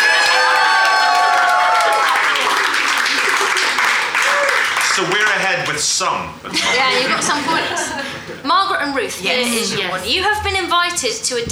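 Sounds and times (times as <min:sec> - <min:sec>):
crowd cheering wildly: 0:00.0 - 0:05.8, 0:06.4 - 0:08.6
laughter: 0:02.3 - 0:10.8
speech: 0:05.7 - 0:11.5.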